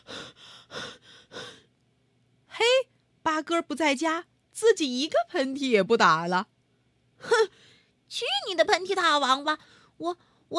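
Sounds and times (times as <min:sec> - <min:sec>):
person panting after running: 0:00.0 - 0:01.7
speech: 0:03.4 - 0:06.5, 0:08.5 - 0:10.5.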